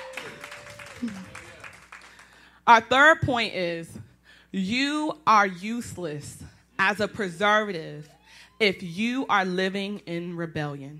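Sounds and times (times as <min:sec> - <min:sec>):
church congregation clapping for a young helper during a sermon: 0:00.0 - 0:02.5
speech: 0:01.0 - 0:01.4, 0:02.7 - 0:10.9.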